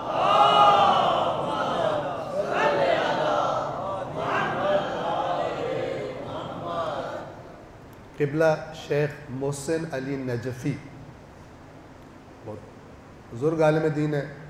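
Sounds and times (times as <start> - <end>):
crowd reciting salawat in unison: 0.0 - 7.6
speech: 8.2 - 10.9, 13.3 - 14.4.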